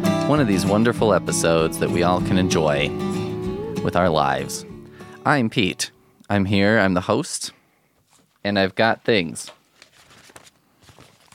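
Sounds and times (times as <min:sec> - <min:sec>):
speech: 0:00.3 - 0:03.2, 0:03.8 - 0:07.6, 0:08.4 - 0:09.6
paper ruffling: 0:08.0 - 0:11.3.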